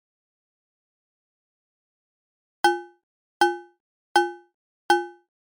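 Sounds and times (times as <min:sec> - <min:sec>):
harmonic intervals: 0:02.7 - 0:05.2.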